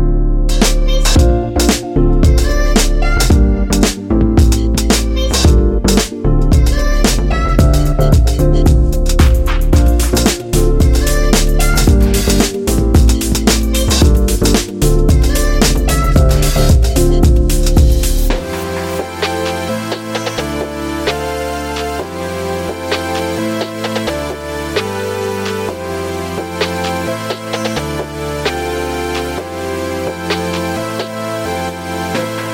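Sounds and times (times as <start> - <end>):
arpeggios: 0.0 - 32.5
chords: 0.0 - 32.5.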